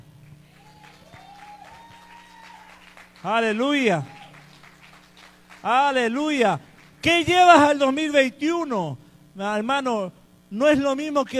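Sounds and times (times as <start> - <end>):
audience applauding: 0.4 - 5.8
speech: 3.2 - 4.2, 5.6 - 11.3.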